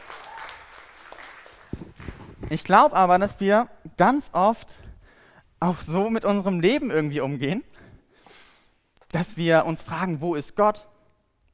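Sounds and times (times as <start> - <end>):
audience applause: 0.0 - 2.4
speech: 2.5 - 4.8, 5.6 - 7.7, 9.1 - 10.9.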